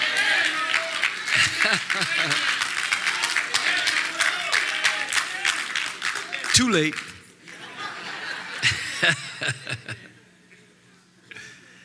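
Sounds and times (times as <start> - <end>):
audience clapping: 0.0 - 7.8
laughter: 1.2 - 2.9, 7.4 - 10.2
speech: 1.7 - 2.6, 6.6 - 7.1, 8.6 - 10.2.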